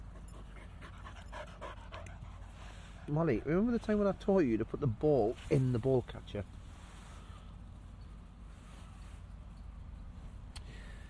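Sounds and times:
dog panting: 0:00.0 - 0:03.1
speech: 0:03.1 - 0:06.6.

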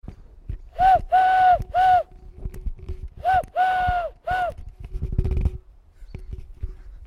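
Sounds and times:
person whistling: 0:00.8 - 0:02.1, 0:03.2 - 0:04.6.

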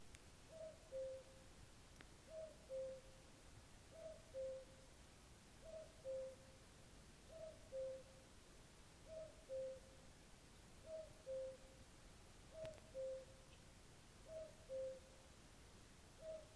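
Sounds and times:
cuckoo calling: 0:00.5 - 0:01.4, 0:02.3 - 0:03.2, 0:03.9 - 0:04.8, 0:05.6 - 0:06.6, 0:07.3 - 0:08.2, 0:09.1 - 0:10.0, 0:10.8 - 0:11.8, 0:12.5 - 0:13.6, 0:14.2 - 0:15.2, 0:16.2 - 0:16.5.

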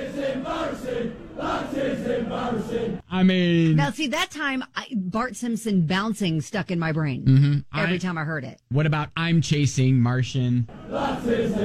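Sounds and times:
soccer crowd chanting: 0:00.0 - 0:03.0, 0:10.7 - 0:11.6
speech: 0:00.4 - 0:11.6.

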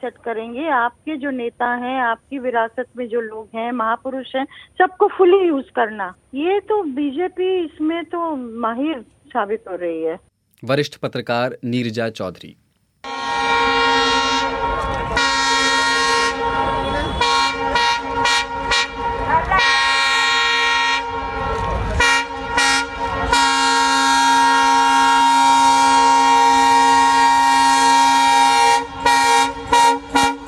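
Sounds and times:
speech: 0:00.0 - 0:13.8
train horn in Amritsar on the line where an accident happened: 0:13.0 - 0:30.4.

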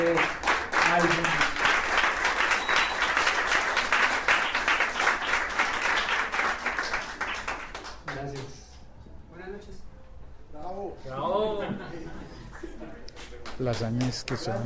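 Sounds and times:
audience applause: 0:00.0 - 0:08.5
laughter: 0:11.2 - 0:13.1
speech: 0:13.7 - 0:14.6.

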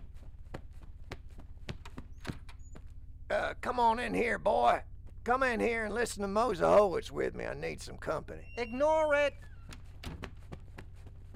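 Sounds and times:
running footsteps down a hallway: 0:00.0 - 0:03.0, 0:09.4 - 0:11.3
low steady drone: 0:03.0 - 0:09.6
speech: 0:03.3 - 0:09.5.

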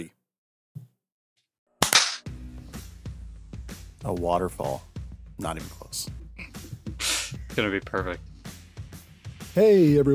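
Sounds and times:
hand clap: 0:01.8 - 0:02.3
speech: 0:04.0 - 0:06.2, 0:07.6 - 0:08.3, 0:09.6 - 0:10.1.

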